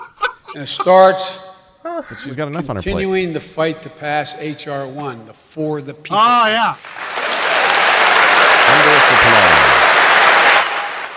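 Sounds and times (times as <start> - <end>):
laughter: 0.0 - 3.1, 8.6 - 9.8
speech: 0.5 - 7.0, 8.8 - 9.7
thunderous audience applause: 6.9 - 11.1.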